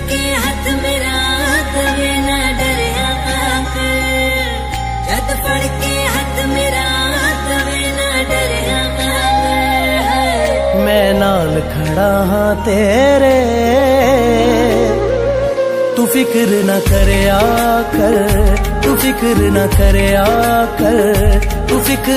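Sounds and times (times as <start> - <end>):
sad ringtone background music: 0.2 - 22.1.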